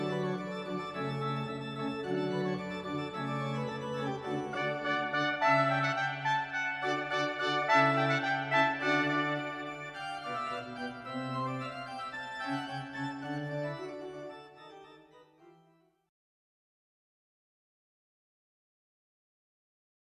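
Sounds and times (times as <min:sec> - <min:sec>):
concerto for two trumpets: 0:00.0 - 0:14.0.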